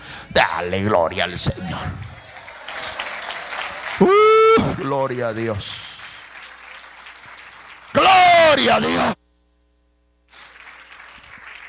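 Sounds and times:
speech: 0.4 - 2.1, 4.0 - 5.8, 8.6 - 9.2
audience applause: 1.8 - 9.2, 10.4 - 11.6.

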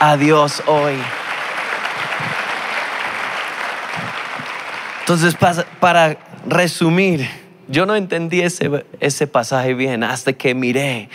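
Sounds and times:
speech: 0.0 - 1.2, 5.1 - 11.1
crowd applause in a large room: 0.0 - 6.4.

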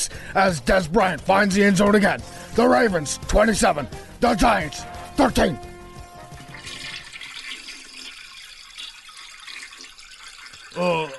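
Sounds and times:
speech: 0.0 - 5.7, 10.8 - 11.1
toilet flushing: 4.9 - 11.1.

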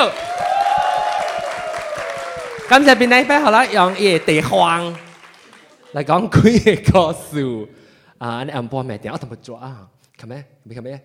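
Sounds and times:
speech: 0.0 - 0.5, 2.7 - 5.0, 5.9 - 11.0
audience clapping: 0.0 - 6.6.

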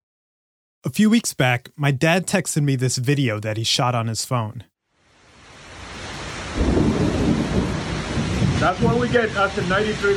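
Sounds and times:
speech: 0.8 - 4.7, 8.6 - 10.1
5 o'clock summer storm in east Orlando: 5.8 - 10.1.

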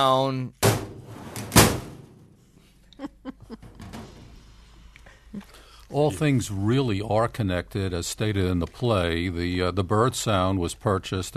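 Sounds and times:
speech: 0.0 - 0.6, 5.9 - 11.3
loud metallic slam of a file cabinet as elevator gate foley: 0.6 - 2.3.

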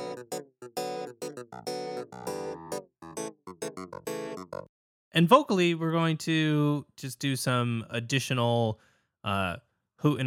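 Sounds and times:
clavinet synthesizer riff: 0.0 - 4.7
speech: 5.2 - 10.2.

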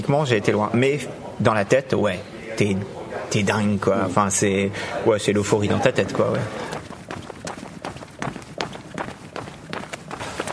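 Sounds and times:
speech: 0.0 - 6.7
footsteps of someone jogging: 5.8 - 10.5.

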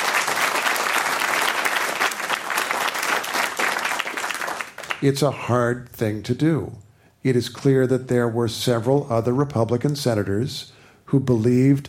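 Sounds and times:
audience applause: 0.0 - 5.0
speech: 5.0 - 11.8.

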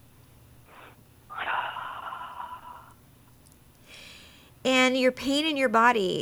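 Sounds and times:
slow breathing during a guided body scan: 0.7 - 3.0, 3.8 - 4.6
speech: 4.6 - 6.2.

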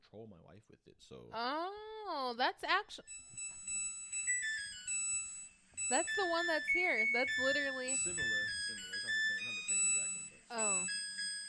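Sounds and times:
speech: 0.1 - 3.8, 5.9 - 9.2, 10.5 - 11.0
washing machine playing a melody: 3.1 - 11.4.

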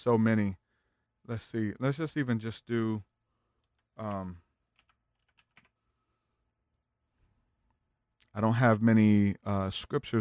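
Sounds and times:
speech: 0.0 - 0.6, 1.3 - 3.1, 4.0 - 4.4, 8.4 - 10.1
fingers typing on a computer keyboard: 3.6 - 5.8.

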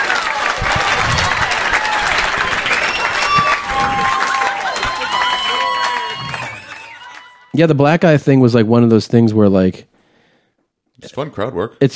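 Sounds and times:
audience applause and cheering: 0.0 - 7.6
speech: 7.6 - 9.9, 11.0 - 11.9.

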